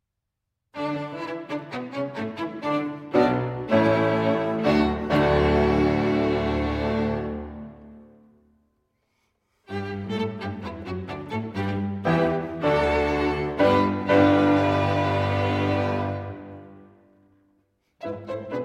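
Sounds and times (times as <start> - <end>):
piano quintet in G minor: 2.2 - 8.2, 9.8 - 17.2, 18.0 - 18.6.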